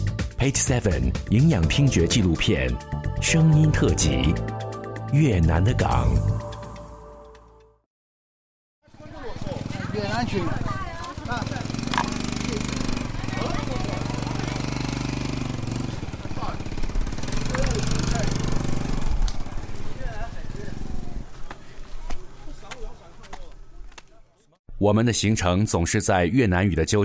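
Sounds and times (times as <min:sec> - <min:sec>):
speech: 0:00.4 - 0:06.4, 0:10.2 - 0:11.4, 0:24.8 - 0:27.0
motorcycle traffic noise: 0:08.8 - 0:24.3.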